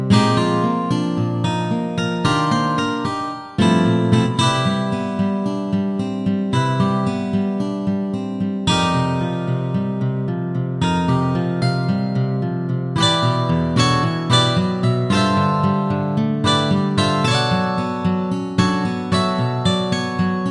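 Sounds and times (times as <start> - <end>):
solo guitar: 0.0 - 20.5.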